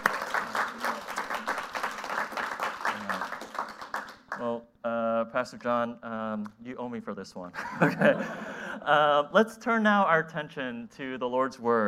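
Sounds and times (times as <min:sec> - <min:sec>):
audience applause: 0:00.0 - 0:04.4
speech: 0:05.4 - 0:11.8
laughter: 0:07.6 - 0:08.9.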